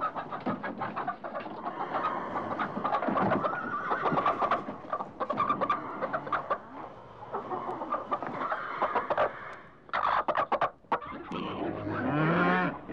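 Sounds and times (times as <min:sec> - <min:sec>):
chicken clucking: 0:00.0 - 0:12.9.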